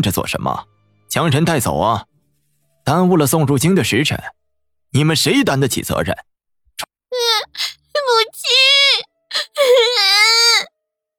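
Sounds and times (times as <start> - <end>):
speech: 0.0 - 2.1, 2.8 - 6.3
little girl crying shrilly: 7.2 - 10.7.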